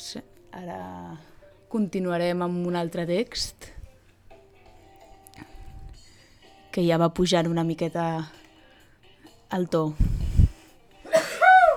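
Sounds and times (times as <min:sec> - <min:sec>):
speech: 0:00.1 - 0:03.8, 0:06.8 - 0:08.4, 0:09.5 - 0:10.1
person sneezing: 0:11.1 - 0:11.7.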